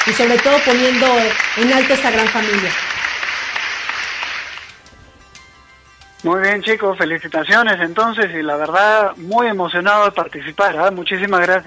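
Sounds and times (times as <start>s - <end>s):
applause: 0.0s - 4.8s
speech: 0.1s - 2.9s, 6.2s - 11.6s.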